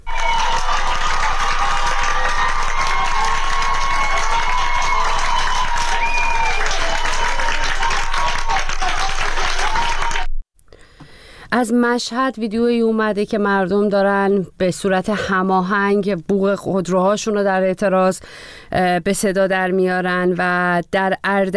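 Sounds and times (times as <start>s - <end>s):
whistles: 0.0s - 7.7s
street crowd clapping: 0.0s - 10.3s
speech: 11.6s - 21.5s.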